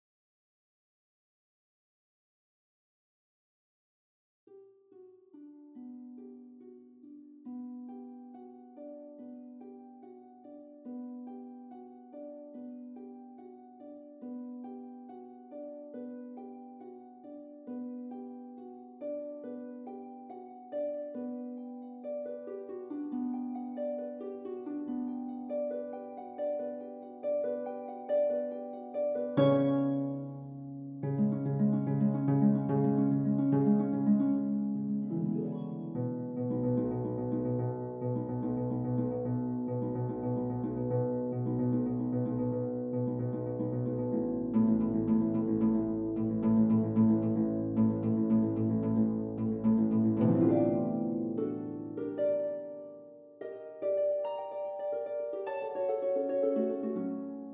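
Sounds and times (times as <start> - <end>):
harp: 4.5 - 57.5.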